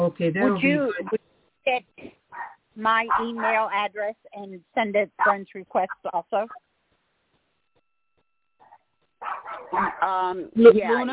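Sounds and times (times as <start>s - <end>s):
speech: 0.0s - 2.1s, 2.8s - 6.7s, 9.2s - 11.1s
dogs barking: 2.3s - 3.7s, 5.2s - 5.4s, 8.6s - 10.0s.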